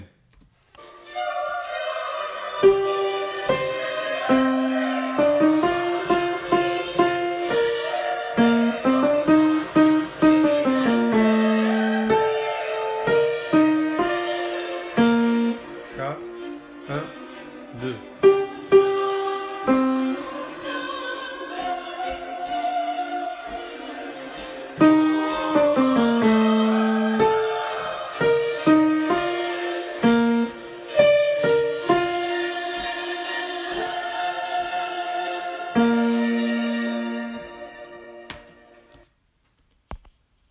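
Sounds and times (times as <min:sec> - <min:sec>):
alto singing a Sanctus: 0:00.8 - 0:39.0.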